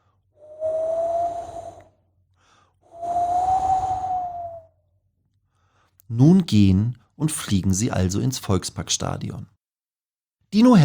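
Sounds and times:
cold wind gusts with faint whistling tone: 0.4s - 1.9s, 2.9s - 4.7s
speech: 6.1s - 9.6s, 10.5s - 10.8s.

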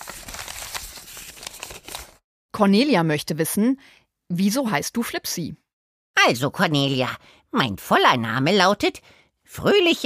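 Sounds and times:
small paper slips rustling as questions are drawn from a knit cap: 0.0s - 2.2s
speech: 2.6s - 5.6s, 6.2s - 10.0s.

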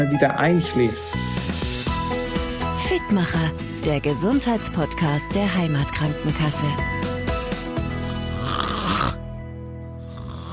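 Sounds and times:
speech: 0.0s - 2.2s, 2.8s - 7.1s
loud human snoring: 7.9s - 9.2s, 10.0s - 10.5s.

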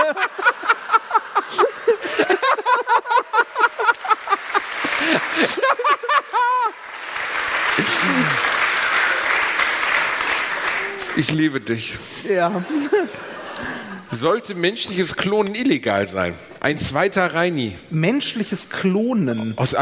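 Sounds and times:
audience laughing and cheering: 0.0s - 11.3s, 12.3s - 14.1s
audience applause: 0.0s - 11.8s
speech: 11.2s - 19.8s.

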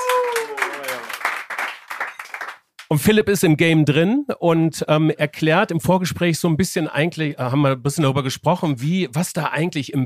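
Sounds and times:
audience applauding: 0.0s - 2.9s
speech: 2.9s - 10.0s.

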